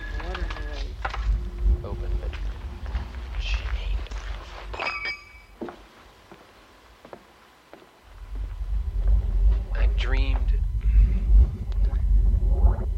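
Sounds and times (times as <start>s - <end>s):
footsteps walking along a sidewalk: 0.0s - 4.9s, 5.5s - 9.7s
low rumbling background: 0.0s - 5.0s, 8.0s - 12.9s.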